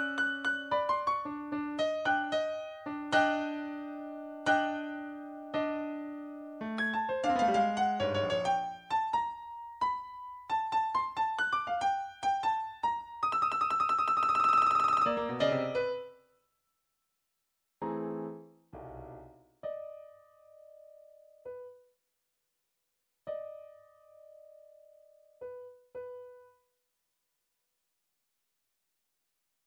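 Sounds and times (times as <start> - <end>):
short midi piano pieces: 0.0 - 16.1, 17.8 - 21.7.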